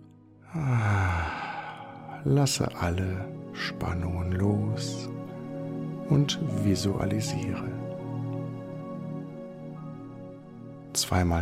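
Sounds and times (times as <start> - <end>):
speech: 0.5 - 1.2, 2.2 - 5.2, 6.1 - 7.8, 11.0 - 11.4
long breath out during a guided breathing exercise: 0.5 - 2.2.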